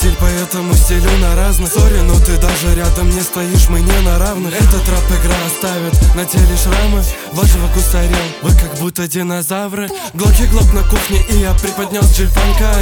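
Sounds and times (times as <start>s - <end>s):
g-funk music: 0.0s - 8.9s, 10.0s - 12.7s.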